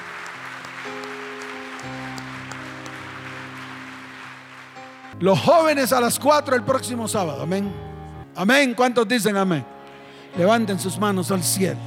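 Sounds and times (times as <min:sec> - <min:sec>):
church congregation applause: 0:00.0 - 0:05.2
speech: 0:05.2 - 0:09.7, 0:10.3 - 0:11.8.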